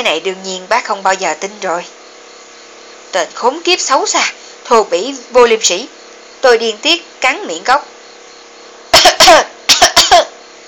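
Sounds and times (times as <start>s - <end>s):
speech: 0.0s - 2.0s, 3.1s - 7.9s
faint steady hum: 0.0s - 10.6s
choking cough after inhaling water: 8.9s - 10.4s.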